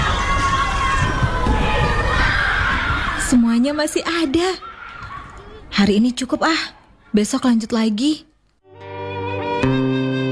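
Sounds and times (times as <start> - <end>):
crowd of children shouting and calling out: 0.0 - 7.2
speech: 3.6 - 4.7, 5.8 - 8.3, 9.6 - 10.2.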